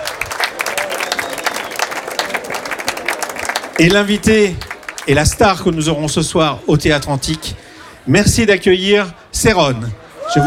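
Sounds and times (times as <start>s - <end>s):
audience applauding at an evening show at an ancient open-air theatre: 0.0s - 5.8s
speech: 3.8s - 10.4s.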